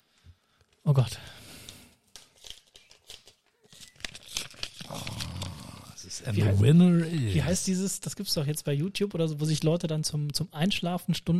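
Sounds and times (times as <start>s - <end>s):
speech: 0.8s - 1.4s, 6.2s - 11.3s
paper crinkling: 2.0s - 6.2s
envelope tearing open: 2.2s - 6.1s.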